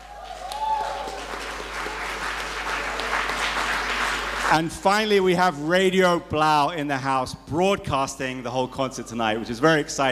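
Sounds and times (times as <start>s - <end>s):
audience applause: 0.0s - 5.1s
speech: 4.5s - 10.1s.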